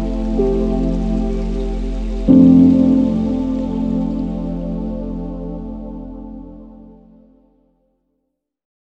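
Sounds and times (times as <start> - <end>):
cedar forest ambience: 0.0 - 6.5.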